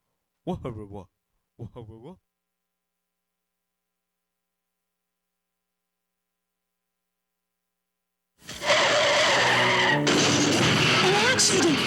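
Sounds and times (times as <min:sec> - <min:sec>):
speech: 0:00.5 - 0:02.3
car tires screeching in a skid: 0:08.5 - 0:11.8.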